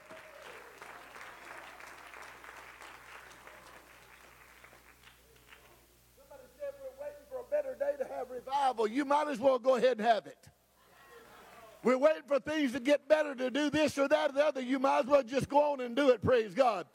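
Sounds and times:
audience clapping hands: 0:00.0 - 0:05.8
speech: 0:08.8 - 0:10.4, 0:11.8 - 0:16.9.

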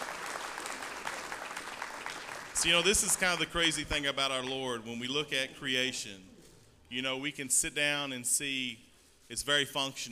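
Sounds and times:
crowd applauding: 0:00.0 - 0:03.7
speech: 0:02.6 - 0:06.3, 0:06.9 - 0:10.1.

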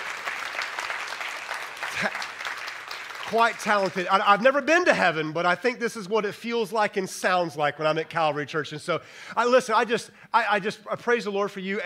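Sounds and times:
church congregation clapping for the worship team: 0:00.0 - 0:04.6
speech: 0:02.0 - 0:02.3, 0:03.3 - 0:11.8.

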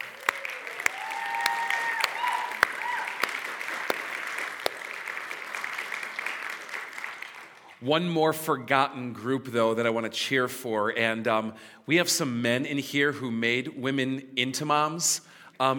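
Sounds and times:
audience applause: 0:00.0 - 0:07.8
speech: 0:07.8 - 0:15.7.

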